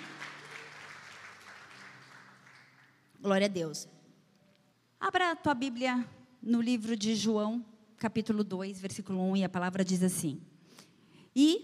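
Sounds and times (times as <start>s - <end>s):
church congregation applause in praise during a service: 0.0s - 3.2s
speech: 3.2s - 4.0s, 5.1s - 10.5s, 11.4s - 11.6s.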